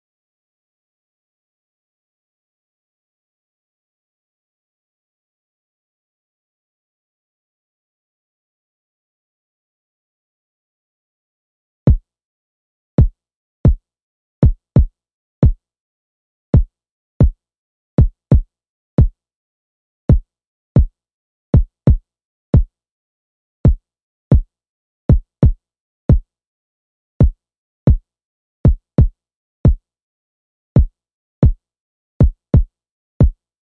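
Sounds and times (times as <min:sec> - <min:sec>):
kick drum: 0:13.0 - 0:13.8, 0:14.4 - 0:15.6, 0:16.6 - 0:17.4, 0:18.0 - 0:19.2, 0:20.1 - 0:20.9, 0:21.6 - 0:22.0, 0:23.7 - 0:24.5, 0:25.1 - 0:26.3, 0:27.2 - 0:28.0, 0:28.7 - 0:29.8, 0:30.8 - 0:31.6, 0:32.2 - 0:33.4.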